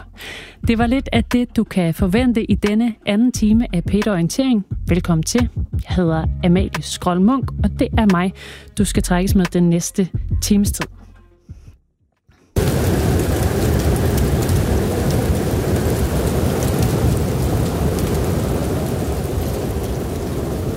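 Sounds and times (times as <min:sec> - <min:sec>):
speech: 0:00.7 - 0:11.0
roaring snowstorm in a winter storm: 0:12.6 - 0:20.7.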